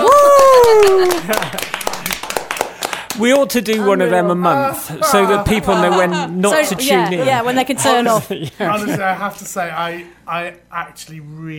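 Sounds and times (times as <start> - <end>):
applause and clapping: 0.0 - 3.8
laughter: 0.1 - 3.0, 3.8 - 9.2
speech: 3.2 - 11.5.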